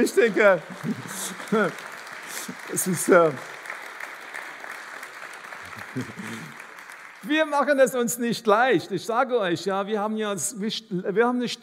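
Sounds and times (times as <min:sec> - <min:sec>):
laughter: 0:00.0 - 0:01.8, 0:05.6 - 0:06.7
speech: 0:00.0 - 0:03.6, 0:06.0 - 0:06.6, 0:07.2 - 0:11.6
audience applause: 0:00.0 - 0:07.9.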